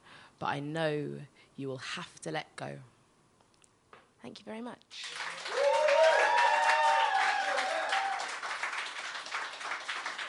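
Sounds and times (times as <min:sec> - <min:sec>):
speech: 0:00.4 - 0:03.0, 0:04.2 - 0:05.2
audience clapping after poem: 0:04.9 - 0:10.2.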